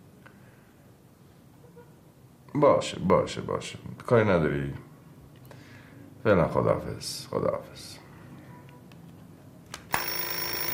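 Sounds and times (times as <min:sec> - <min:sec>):
speech: 0:02.6 - 0:04.9, 0:06.2 - 0:08.0
telephone bell ringing: 0:09.9 - 0:10.7.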